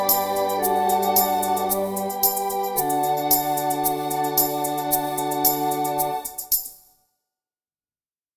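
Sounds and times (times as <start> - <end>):
mellotron pop music: 0.0 - 6.6.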